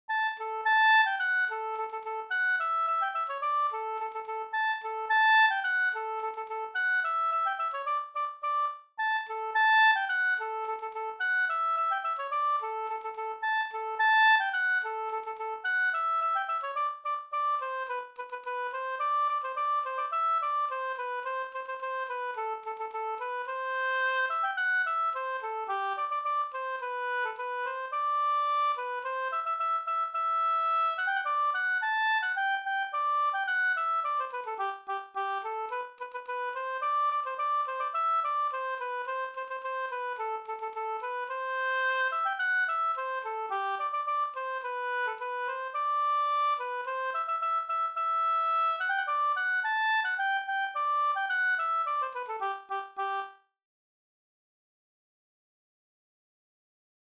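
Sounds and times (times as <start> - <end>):
polka music: 0.1 - 53.3.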